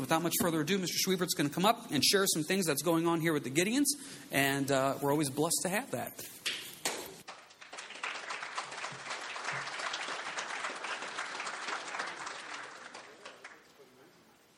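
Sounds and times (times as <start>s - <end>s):
speech: 0.0s - 6.6s
audience applause: 7.3s - 14.0s.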